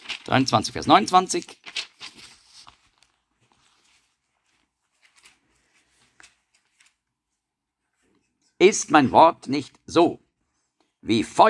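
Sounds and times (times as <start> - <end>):
thin Bible pages being leafed through: 0.0 - 7.1
speech: 0.2 - 1.6, 8.6 - 10.2, 11.0 - 11.4.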